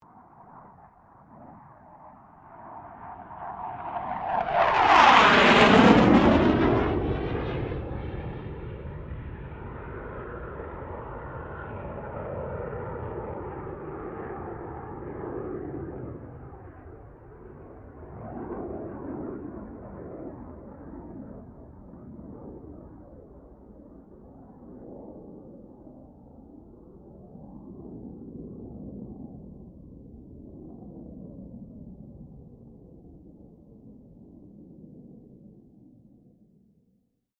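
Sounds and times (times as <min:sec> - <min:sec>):
CA-27 Sabre jet aircraft passing: 0:00.1 - 0:23.2.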